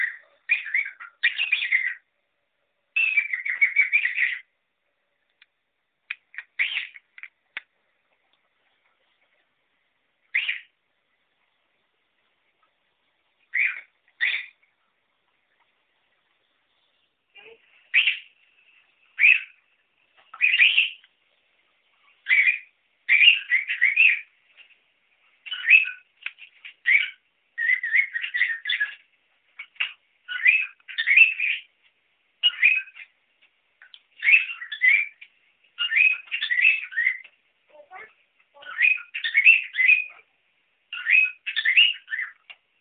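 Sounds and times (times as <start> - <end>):
cockatiel chirping: 0.0 - 2.1, 3.0 - 4.5, 6.4 - 7.0, 10.3 - 10.7, 13.5 - 14.6, 17.9 - 18.3, 19.2 - 19.6, 20.3 - 21.1, 22.2 - 24.3, 25.4 - 26.1, 26.8 - 29.0, 29.6 - 31.7, 32.4 - 33.1, 33.8 - 35.2, 35.8 - 40.3, 40.9 - 42.5.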